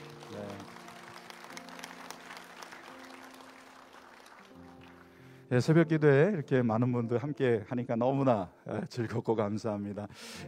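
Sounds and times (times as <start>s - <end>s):
audience applause: 0.0s - 5.3s
speech: 5.5s - 10.4s.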